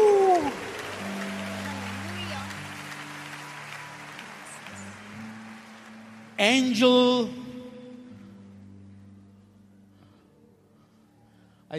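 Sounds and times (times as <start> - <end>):
audience clapping hands: 0.0 - 7.6
speech: 6.4 - 7.4.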